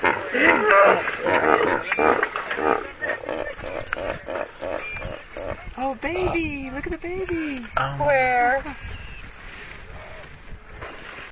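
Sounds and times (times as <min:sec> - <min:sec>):
strong wind: 0:00.0 - 0:11.2
speech: 0:00.3 - 0:03.0, 0:06.0 - 0:08.9.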